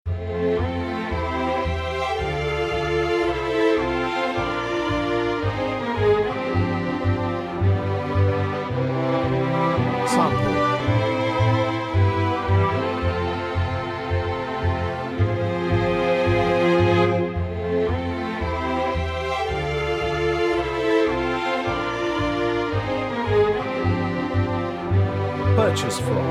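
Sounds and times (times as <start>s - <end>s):
classical music: 0.1s - 26.3s.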